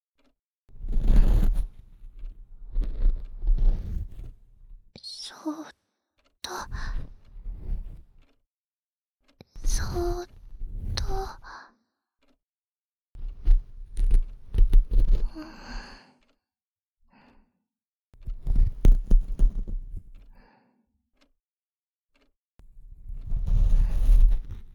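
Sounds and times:
ear brushing with a bonten puff: 0.2s - 4.7s, 6.7s - 8.4s, 13.2s - 15.8s, 18.2s - 20.3s, 23.0s - 24.7s.

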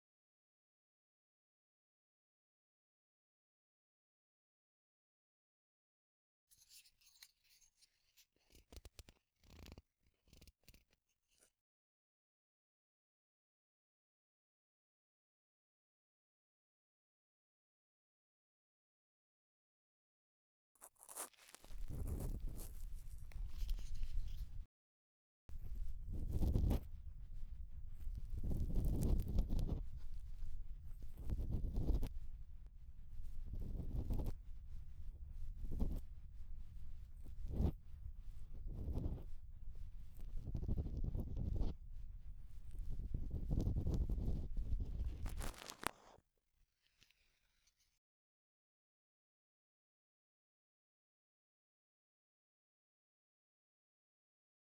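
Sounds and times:
bamboo ear pick at the right ear canal entrance: 20.9s - 24.6s, 25.5s - 45.6s.

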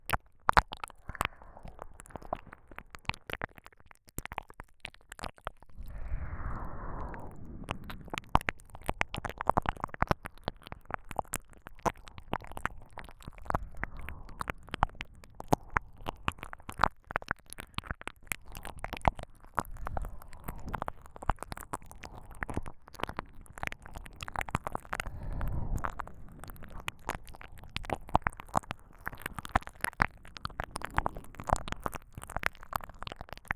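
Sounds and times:
binaural ear licking on both ears: 0.1s - 33.5s.

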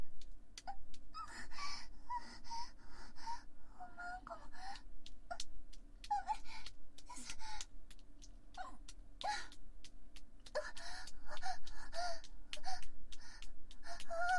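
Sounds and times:
woman moaning: 0.6s - 5.5s, 6.0s - 7.7s, 8.5s - 9.6s, 10.4s - 14.3s.

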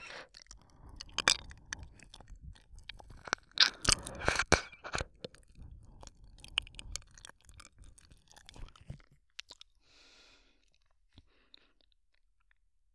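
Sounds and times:
ear licking: 0.0s - 9.6s.

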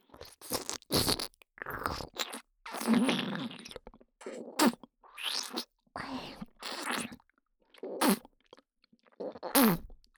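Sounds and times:
wet oral sex mouth sounds in the right ear: 0.4s - 3.9s, 4.6s - 7.1s, 7.8s - 10.0s.

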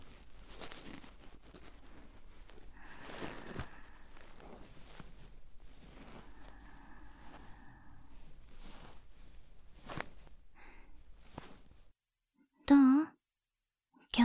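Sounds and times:
ear cleaning in the right ear: 0.0s - 11.8s.

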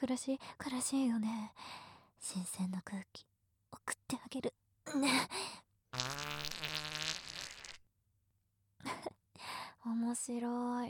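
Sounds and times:
speech: 0.0s - 6.2s, 9.8s - 10.8s
long loud buzzy fart: 6.0s - 7.8s.

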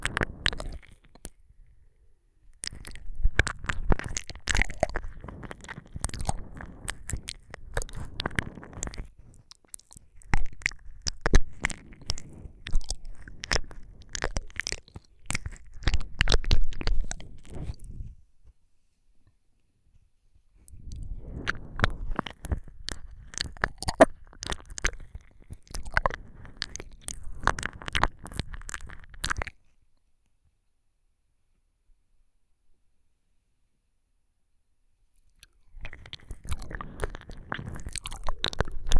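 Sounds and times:
wet splashy ear licking ASMR: 0.0s - 1.4s, 2.6s - 18.0s, 20.7s - 29.6s, 35.4s - 38.9s.

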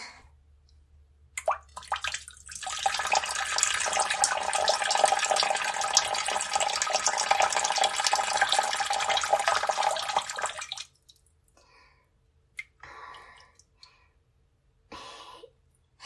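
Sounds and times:
person urinating in a toilet: 1.4s - 11.3s.

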